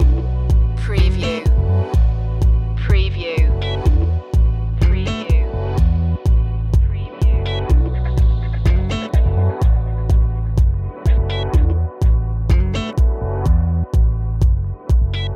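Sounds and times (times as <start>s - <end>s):
chill calypso loop: 0.0s - 15.3s.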